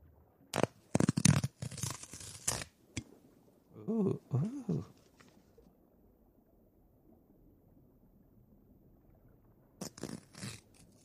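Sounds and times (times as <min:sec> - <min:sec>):
paper tearing as a check envelope is ripped open: 0:00.6 - 0:02.8, 0:09.8 - 0:11.0
speech: 0:03.9 - 0:05.0.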